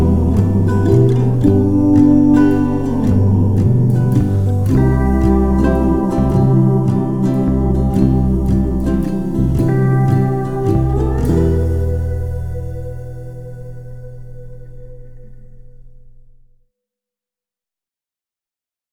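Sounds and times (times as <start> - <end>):
emotional Hawaii instrumental music: 0.0 - 14.8.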